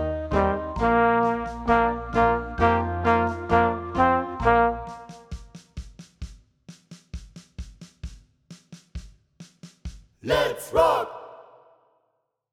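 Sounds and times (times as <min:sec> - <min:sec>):
horn: 0:00.0 - 0:05.3.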